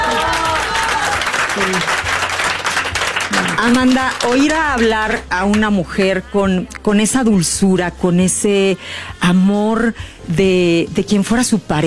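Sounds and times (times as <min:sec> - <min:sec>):
audience applause: 0:00.0 - 0:05.2
speech: 0:01.6 - 0:02.0, 0:03.6 - 0:11.8.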